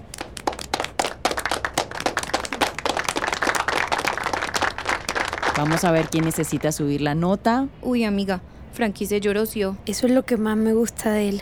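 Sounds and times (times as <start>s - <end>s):
crowd applause: 0.0s - 6.7s
speech: 5.6s - 11.4s.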